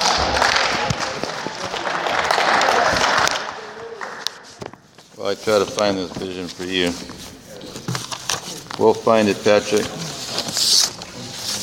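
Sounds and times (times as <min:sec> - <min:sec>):
audience clapping: 0:00.0 - 0:04.9
speech: 0:05.3 - 0:07.3, 0:08.8 - 0:10.0, 0:10.6 - 0:10.8.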